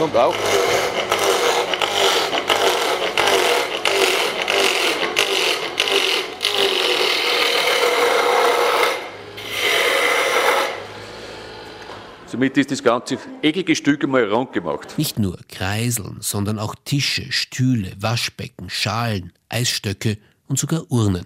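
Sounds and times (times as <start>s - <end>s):
speech: 0.0s - 1.1s, 12.4s - 21.2s
small wood lathe turning wood: 0.0s - 12.0s.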